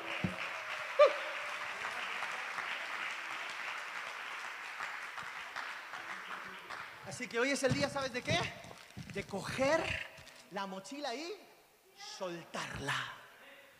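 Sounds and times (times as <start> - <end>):
audience applause: 0.0 - 8.8
speech: 7.2 - 13.2.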